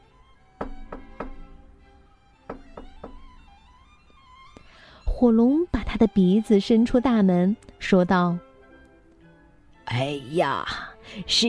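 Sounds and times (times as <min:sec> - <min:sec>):
heavy knocking with a door knocker: 0:00.6 - 0:01.6, 0:02.5 - 0:03.6
speech: 0:05.2 - 0:08.4, 0:09.9 - 0:11.4.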